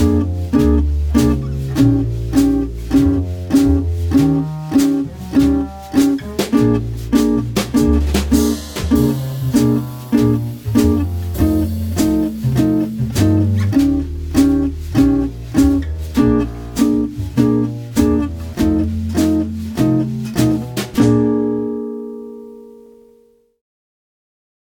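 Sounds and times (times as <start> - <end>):
jazz guitar B-flat major root five chord: 0.0 - 23.4.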